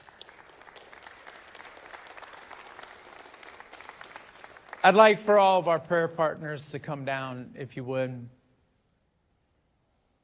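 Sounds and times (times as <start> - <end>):
audience clapping: 0.0 - 6.6
speech: 4.8 - 8.4.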